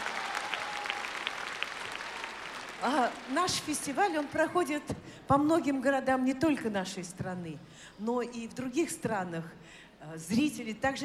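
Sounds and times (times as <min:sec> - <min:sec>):
audience applause: 0:00.0 - 0:04.7
speech: 0:02.8 - 0:11.0.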